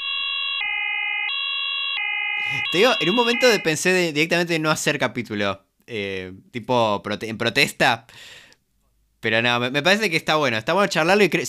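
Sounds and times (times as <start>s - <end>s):
spoiler alarm siren sound effect: 0.0s - 3.8s
speech: 2.4s - 8.4s, 9.2s - 11.4s.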